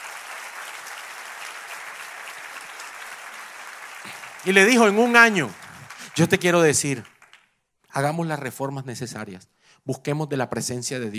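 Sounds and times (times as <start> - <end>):
audience applause: 0.0 - 7.5
speech: 4.4 - 5.6, 6.2 - 7.1, 7.9 - 11.1.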